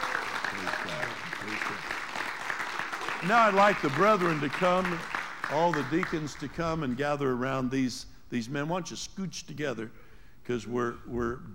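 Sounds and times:
audience applause: 0:00.0 - 0:06.5
speech: 0:03.2 - 0:11.5.

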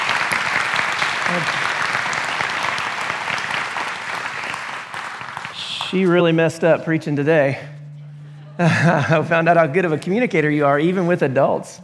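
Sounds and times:
audience applause: 0:00.0 - 0:06.4
speech: 0:01.3 - 0:01.6, 0:05.9 - 0:07.7, 0:08.6 - 0:11.8
laughter: 0:08.0 - 0:11.0.

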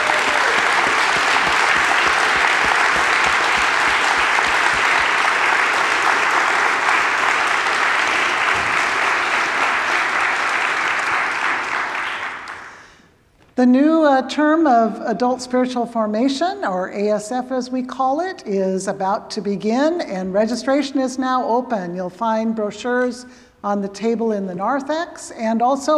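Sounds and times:
audience applause: 0:00.0 - 0:12.8
speech: 0:13.6 - 0:25.9.

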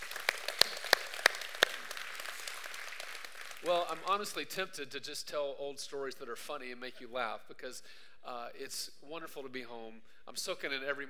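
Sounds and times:
people cheering: 0:00.0 - 0:04.4
speech: 0:03.6 - 0:11.0.

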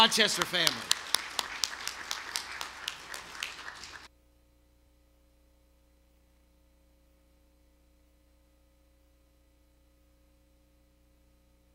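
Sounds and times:
speech: 0:00.0 - 0:01.0
audience applause: 0:00.0 - 0:04.1.

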